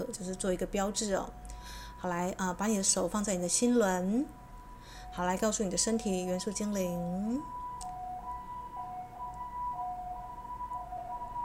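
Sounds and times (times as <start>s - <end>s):
ambulance siren: 0.0s - 11.4s
speech: 0.1s - 4.4s, 5.1s - 7.6s.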